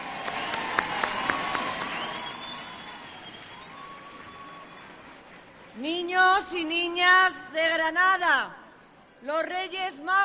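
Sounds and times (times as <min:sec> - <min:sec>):
crowd applause: 0:00.0 - 0:05.3
speech: 0:05.8 - 0:08.6, 0:09.2 - 0:10.2.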